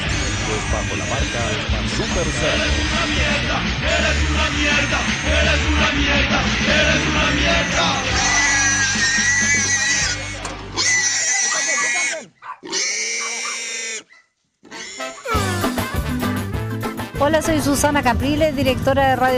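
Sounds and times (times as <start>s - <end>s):
pigs grunting oinks: 0.0s - 2.8s, 8.1s - 15.8s
pigs raised for commercial sale squealing: 0.0s - 5.7s, 7.6s - 15.9s
speech: 0.7s - 8.4s, 17.2s - 19.3s.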